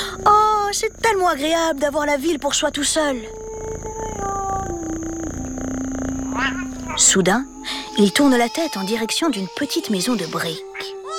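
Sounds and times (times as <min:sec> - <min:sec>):
speech: 0:00.2 - 0:03.5, 0:06.5 - 0:11.0
cat: 0:03.9 - 0:07.1.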